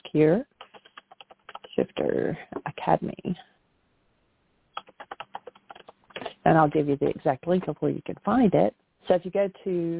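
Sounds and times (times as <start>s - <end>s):
speech: 0.1s - 0.5s, 1.8s - 3.5s, 6.4s - 9.9s
typing on a computer keyboard: 0.6s - 1.8s, 4.8s - 6.3s.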